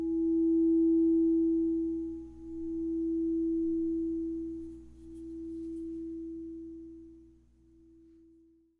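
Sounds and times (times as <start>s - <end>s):
crystal singing bowls ringing: 0.0s - 6.9s.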